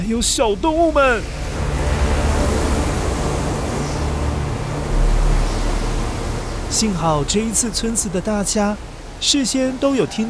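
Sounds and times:
big ocean waves crashing: 0:00.0 - 0:10.2
speech: 0:00.1 - 0:01.6, 0:06.7 - 0:10.2.

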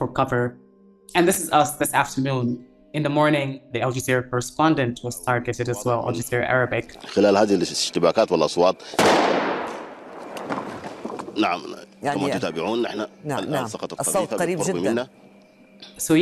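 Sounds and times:
speech: 0:00.2 - 0:09.5, 0:11.4 - 0:16.2
laughter: 0:07.0 - 0:09.0, 0:11.4 - 0:15.1
gunfire in Sudan: 0:09.0 - 0:10.7.

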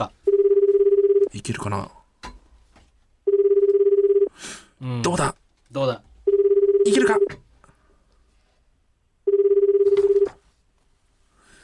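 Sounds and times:
telephone ringing: 0:00.3 - 0:01.4, 0:03.2 - 0:04.3, 0:06.2 - 0:07.4, 0:09.2 - 0:10.4
speech: 0:01.3 - 0:02.0, 0:04.8 - 0:06.0.

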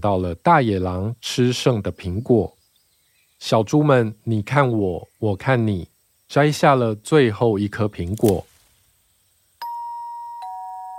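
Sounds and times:
speech: 0:00.0 - 0:02.6, 0:03.4 - 0:08.5
two-tone ding-dong doorbell: 0:09.6 - 0:10.9.

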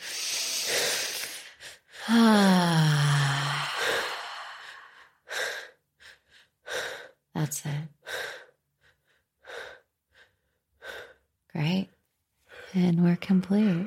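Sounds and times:
deep breathing during a guided breathing exercise: 0:00.0 - 0:07.2, 0:08.0 - 0:11.3
speech: 0:02.1 - 0:02.6, 0:07.5 - 0:08.0, 0:11.6 - 0:11.9, 0:12.7 - 0:13.8.

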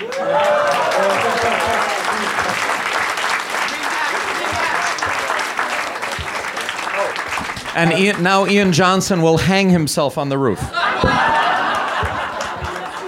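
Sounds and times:
laughter: 0:00.0 - 0:08.7, 0:10.4 - 0:13.0
crowd applause: 0:00.0 - 0:09.3, 0:10.8 - 0:13.0
speech: 0:07.8 - 0:11.5.

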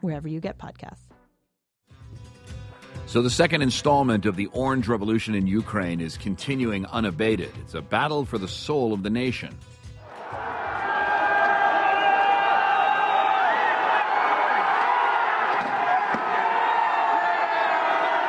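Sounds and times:
speech: 0:00.0 - 0:01.2, 0:03.1 - 0:09.8
protesters shouting and cheering: 0:10.0 - 0:18.2.

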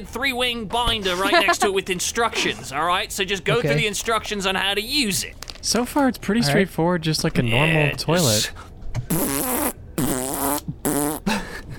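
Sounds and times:
speech: 0:00.0 - 0:09.6
mouth fart noises: 0:09.0 - 0:11.3.

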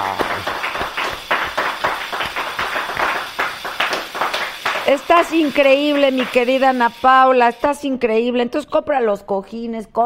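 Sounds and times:
audience applause: 0:00.0 - 0:06.7
speech: 0:04.9 - 0:10.0.

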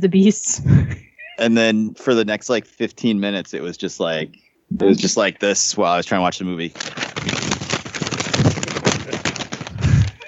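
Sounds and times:
speech: 0:00.0 - 0:07.8
person imitating crinkling paper and snack wrappers: 0:06.6 - 0:10.2.

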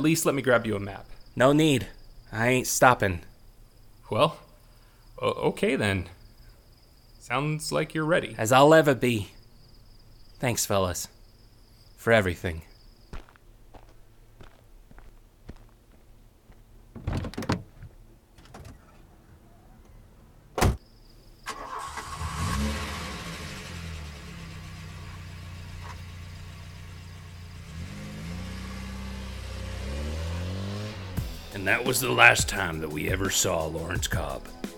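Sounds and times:
speech: 0:00.0 - 0:03.3, 0:04.1 - 0:04.4, 0:05.2 - 0:06.2, 0:07.2 - 0:09.4, 0:10.4 - 0:11.2, 0:12.0 - 0:12.7, 0:31.9 - 0:34.7
soft footsteps: 0:13.1 - 0:18.0
car door slamming: 0:16.9 - 0:19.0, 0:20.5 - 0:20.8
car engine starting and driving away: 0:21.8 - 0:32.2.

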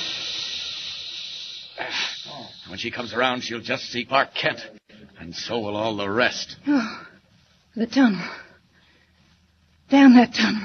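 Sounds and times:
escaping steam hissing: 0:00.0 - 0:04.0
speech: 0:02.8 - 0:07.1, 0:07.8 - 0:08.4, 0:09.9 - 0:10.6.

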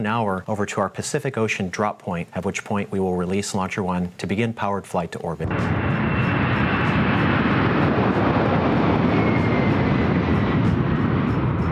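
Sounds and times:
speech: 0:00.0 - 0:06.4
Boeing 747 carrier aircraft taking off: 0:05.4 - 0:11.6.

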